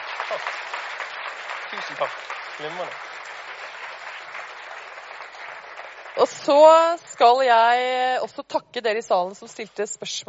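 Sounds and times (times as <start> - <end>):
audience applause in a hall at a talk event: 0.0 - 7.8
speech: 0.3 - 0.8, 1.7 - 3.2, 6.2 - 10.2.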